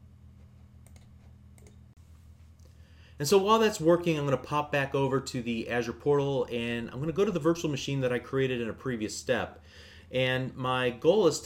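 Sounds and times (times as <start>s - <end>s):
computer mouse clicking a Continue button in a VPN connection utility: 0.8s - 1.8s
speech: 3.2s - 11.4s.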